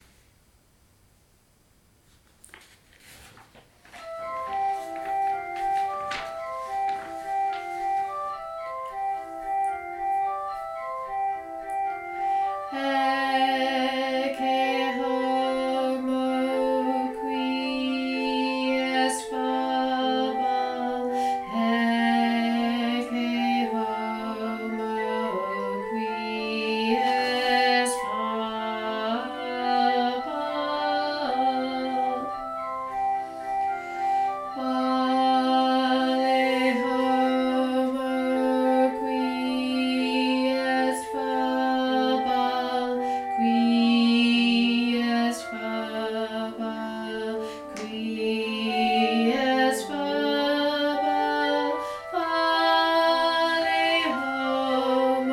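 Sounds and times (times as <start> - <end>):
tenor singing: 4.0 - 55.3.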